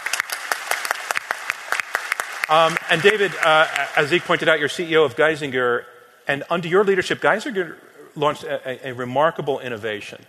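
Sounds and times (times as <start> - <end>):
audience applause welcoming speaker: 0.0 - 4.6
speech: 2.5 - 10.2.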